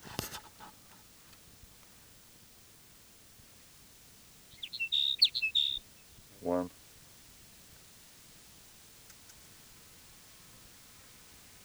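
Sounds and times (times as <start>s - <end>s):
sage sparrow singing: 4.4s - 6.7s
speech: 6.4s - 6.8s.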